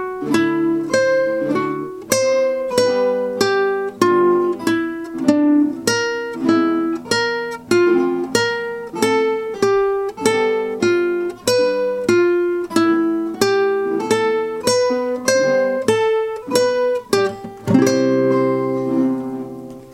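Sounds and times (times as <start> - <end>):
violin excerpt: 0.0 - 19.9.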